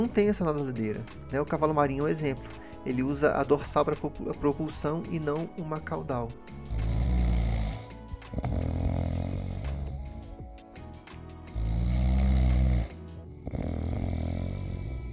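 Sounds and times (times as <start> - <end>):
speech: 0.0 - 6.9
loud rumbling snoring: 6.6 - 10.4, 11.5 - 15.1.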